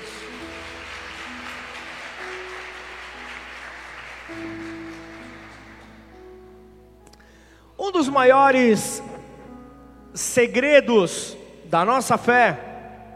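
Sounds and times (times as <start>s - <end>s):
audience applauding: 0.0s - 6.2s
sustained keyboard-like chords: 0.0s - 13.1s
speech: 4.3s - 4.7s, 7.9s - 9.1s, 10.2s - 12.7s.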